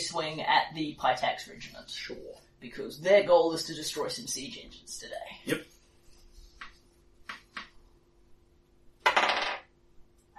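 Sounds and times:
speech: 0:00.1 - 0:05.7
dice rattling across a tabletop: 0:09.0 - 0:09.7.

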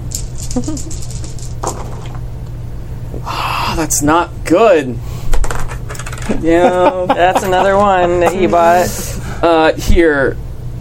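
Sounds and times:
dice rattling and rolling: 0:00.1 - 0:02.2, 0:05.4 - 0:06.4
speech: 0:00.5 - 0:01.9, 0:03.2 - 0:05.1, 0:06.3 - 0:10.4
laughter: 0:06.3 - 0:09.3.

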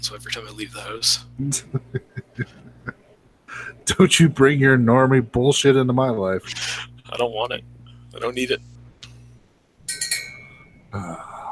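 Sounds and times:
speech: 0:00.0 - 0:02.6, 0:03.9 - 0:08.7, 0:10.9 - 0:11.3
laughter: 0:01.4 - 0:03.8
small bell ringing: 0:09.8 - 0:11.0.

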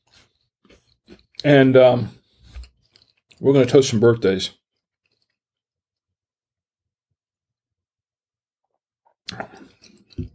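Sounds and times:
chewing a cracker: 0:00.0 - 0:01.5, 0:02.2 - 0:03.4, 0:04.6 - 0:05.4, 0:09.3 - 0:10.3
speech: 0:01.4 - 0:02.2, 0:03.4 - 0:04.6.

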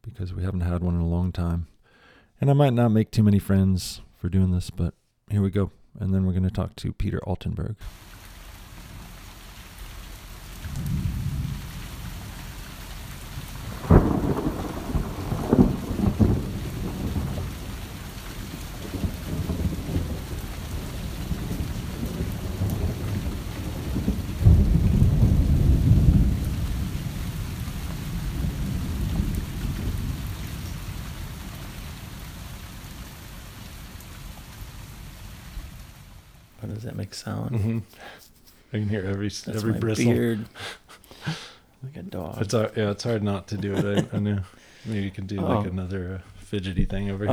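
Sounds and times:
speech: 0:00.2 - 0:01.7, 0:02.4 - 0:08.2, 0:37.1 - 0:47.3
rain: 0:07.8 - 0:41.6, 0:42.2 - 0:47.3
thunderstorm: 0:10.6 - 0:32.8
laughter: 0:36.6 - 0:47.3.

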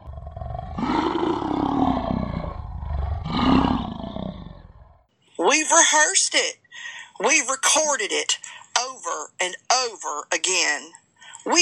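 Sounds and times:
animal growling in the distance: 0:00.0 - 0:05.1
speech: 0:05.4 - 0:11.6.

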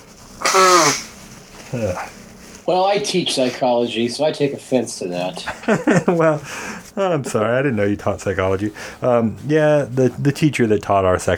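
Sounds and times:
person blowing nose: 0:00.4 - 0:02.1
speech: 0:01.7 - 0:11.3
laughter: 0:05.4 - 0:06.8.

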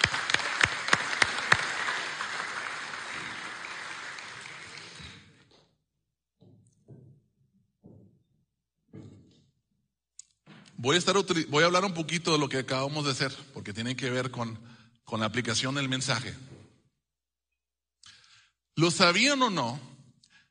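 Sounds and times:
audience applause: 0:00.0 - 0:05.4
speech: 0:10.8 - 0:16.5, 0:18.8 - 0:19.9.

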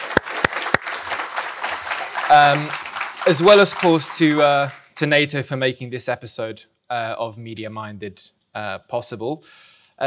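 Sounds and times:
audience applause: 0:00.0 - 0:05.0
speech: 0:02.3 - 0:10.0.

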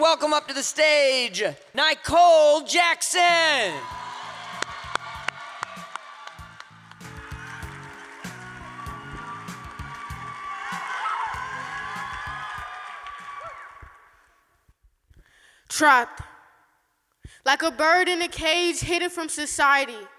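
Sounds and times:
speech: 0:00.0 - 0:04.0, 0:15.8 - 0:16.3, 0:17.4 - 0:20.1
audience applause: 0:03.8 - 0:14.1.

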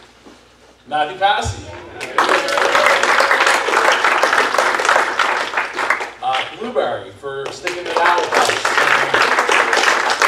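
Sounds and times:
speech: 0:00.9 - 0:01.8, 0:06.6 - 0:09.4
conference audience applause: 0:01.8 - 0:06.4, 0:07.6 - 0:10.2.

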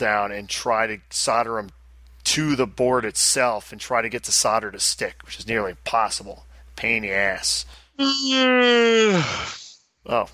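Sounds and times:
speech: 0:00.0 - 0:10.3
person yawning: 0:08.0 - 0:09.8.

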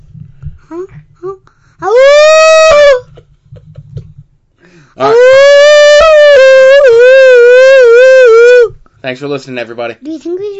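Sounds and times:
speech: 0:00.7 - 0:02.1, 0:09.1 - 0:10.5
child imitating a howl: 0:01.8 - 0:03.1, 0:05.0 - 0:08.7.

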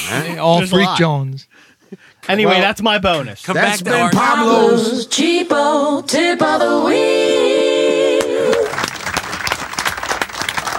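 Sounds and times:
speech: 0:00.1 - 0:07.7
hand clapping: 0:08.2 - 0:10.7.

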